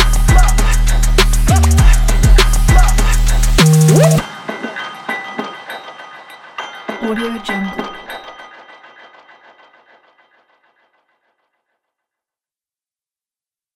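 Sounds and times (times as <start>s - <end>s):
rap beat: 0.0s - 5.7s.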